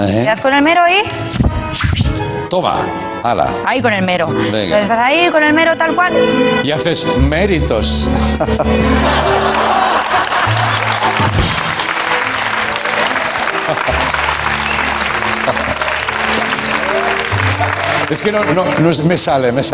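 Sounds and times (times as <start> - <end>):
speech: 0.0 - 10.3, 18.1 - 19.7
laughter: 8.1 - 18.0
audience applause: 9.0 - 19.6.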